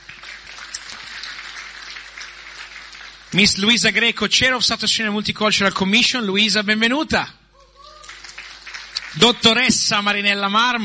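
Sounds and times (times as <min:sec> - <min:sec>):
audience applause: 0:00.0 - 0:03.8, 0:07.8 - 0:09.7
speech: 0:03.3 - 0:07.4, 0:09.2 - 0:10.8.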